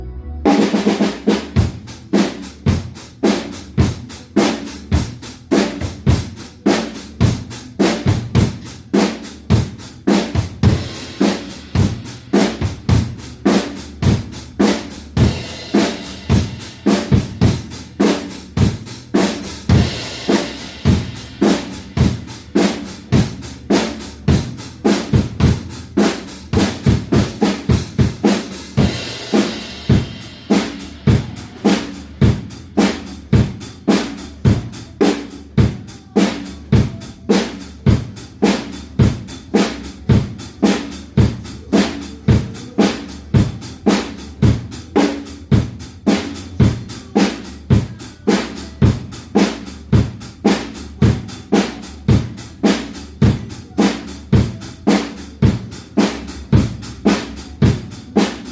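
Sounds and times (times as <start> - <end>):
drum kit: 0.0 - 58.5.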